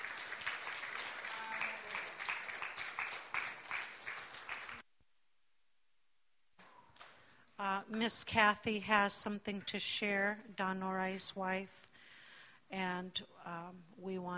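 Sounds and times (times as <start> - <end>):
audience clapping: 0.0 - 4.8
speech: 7.9 - 11.9, 12.7 - 14.3.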